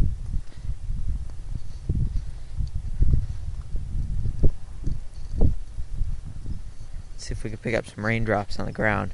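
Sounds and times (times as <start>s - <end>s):
strong wind outdoors: 0.0s - 9.1s
speech: 7.3s - 9.1s.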